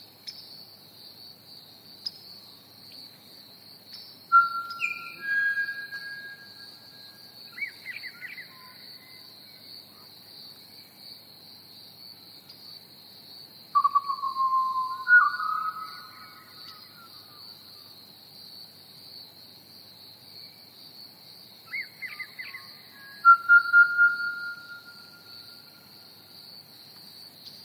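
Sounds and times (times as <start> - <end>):
Pied Butcherbird whistling: 4.3 - 6.6, 13.8 - 16.3, 23.2 - 25.6.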